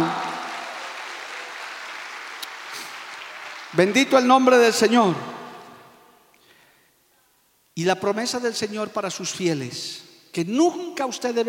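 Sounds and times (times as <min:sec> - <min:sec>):
audience applause: 0:00.0 - 0:04.0
speech: 0:03.7 - 0:05.4, 0:07.8 - 0:11.4.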